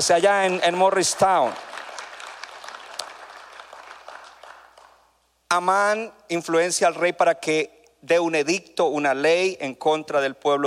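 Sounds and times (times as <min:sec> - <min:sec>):
speech: 0:00.0 - 0:01.8, 0:05.5 - 0:10.6
audience clapping: 0:00.0 - 0:05.2.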